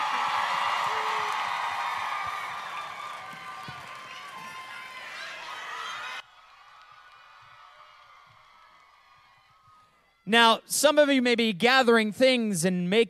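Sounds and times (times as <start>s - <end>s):
large audience applause and cheering: 0.0s - 10.2s
speech: 10.3s - 13.0s.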